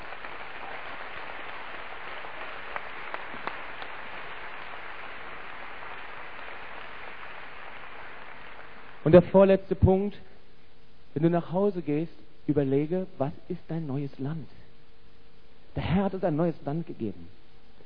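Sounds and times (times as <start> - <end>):
audience applause: 0.0 - 9.0
speech: 9.1 - 10.3, 11.2 - 14.6, 15.8 - 17.4.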